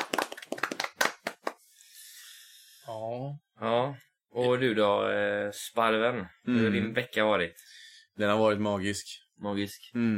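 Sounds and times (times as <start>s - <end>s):
brief round of crisp hand claps: 0.0s - 1.6s
speech: 3.0s - 10.1s.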